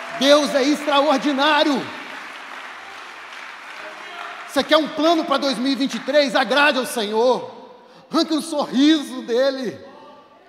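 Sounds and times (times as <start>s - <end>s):
audience applause: 0.0s - 6.2s
speech: 0.2s - 2.0s, 4.5s - 9.9s.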